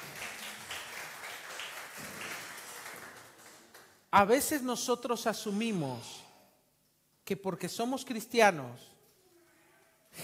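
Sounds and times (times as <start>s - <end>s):
applause for an actress at a motivational talk: 0.0s - 4.1s
speech: 4.1s - 6.2s, 7.3s - 8.9s.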